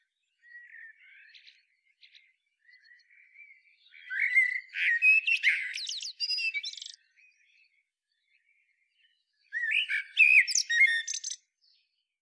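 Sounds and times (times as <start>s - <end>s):
common blackbird song: 0.0s - 12.2s.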